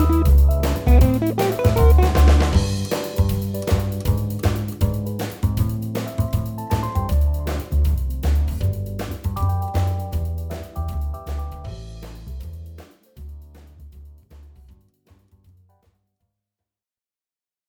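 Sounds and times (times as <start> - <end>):
improvised music at 158 bpm: 0.0 - 13.4.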